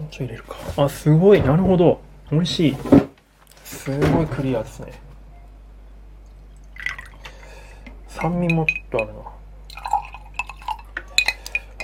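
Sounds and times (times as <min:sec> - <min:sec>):
speech: 0:00.1 - 0:03.0, 0:03.8 - 0:05.0, 0:08.2 - 0:09.4
drink spilling: 0:06.6 - 0:07.4, 0:09.7 - 0:11.8.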